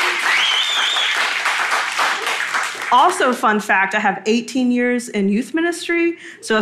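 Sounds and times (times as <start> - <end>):
audience cheering: 0.0 - 3.0
speech: 2.9 - 6.6.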